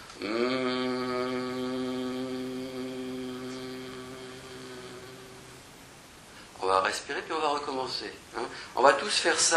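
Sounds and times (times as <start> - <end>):
group humming with closed mouths: 0.0 - 5.8
speech: 6.9 - 9.5.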